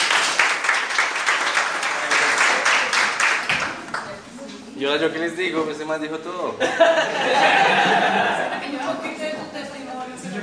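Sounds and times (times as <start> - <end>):
audience applause: 0.0 - 4.0
speech: 4.8 - 10.4
laughter: 6.6 - 9.0.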